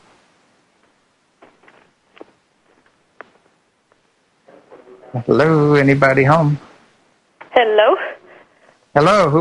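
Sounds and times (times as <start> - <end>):
footsteps: 0.7 - 4.9
speech: 5.1 - 6.7, 8.9 - 9.3.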